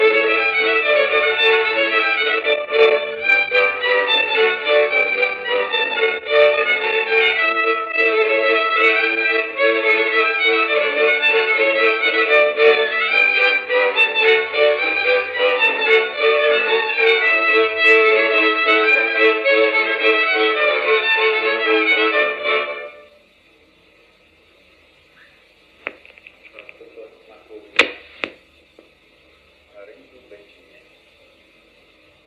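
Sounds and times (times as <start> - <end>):
instrumental jingle: 0.0 - 23.0.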